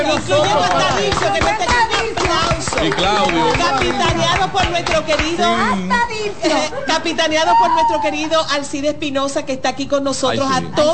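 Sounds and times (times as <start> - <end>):
group applause: 0.0 - 5.6
speech: 2.8 - 10.9.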